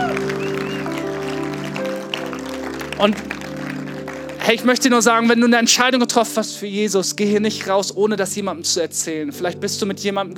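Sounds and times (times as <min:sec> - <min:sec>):
crowd applause: 0:00.0 - 0:05.3
sustained keyboard chords: 0:00.0 - 0:10.3
speech: 0:03.0 - 0:03.4, 0:04.5 - 0:10.3.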